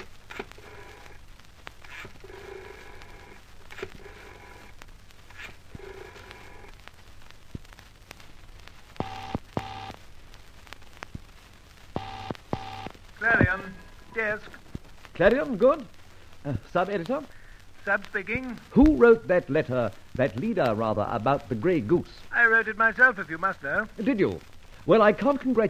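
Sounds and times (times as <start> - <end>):
faint hiss: 0.0 - 25.6
telephone ringing: 9.0 - 9.9, 12.0 - 13.5
speech: 13.5 - 14.6, 15.2 - 25.6.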